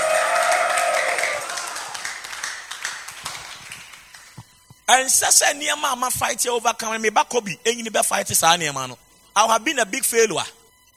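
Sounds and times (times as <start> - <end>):
crowd shouting praise: 0.0 - 2.2
crowd clapping: 0.0 - 4.4
speech: 4.9 - 10.6.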